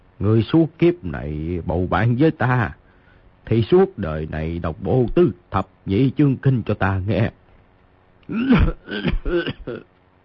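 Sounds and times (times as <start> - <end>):
speech: 0.2 - 2.8, 3.4 - 7.4, 8.3 - 9.9
person acting out a choking coughing fit: 8.3 - 9.9.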